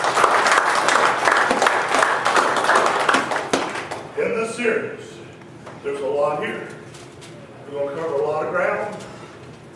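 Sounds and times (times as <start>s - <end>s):
audience applause: 0.0s - 4.1s
speech: 5.8s - 6.7s, 7.7s - 9.0s.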